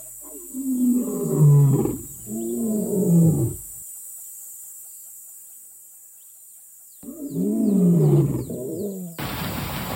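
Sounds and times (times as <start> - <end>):
lion roaring: 0.2 - 3.6, 7.0 - 9.2.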